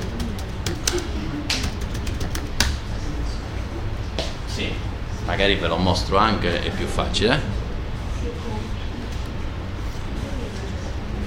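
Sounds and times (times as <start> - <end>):
typing on a computer keyboard: 0.0 - 2.8
low hum: 0.0 - 11.2
speech: 5.4 - 7.6.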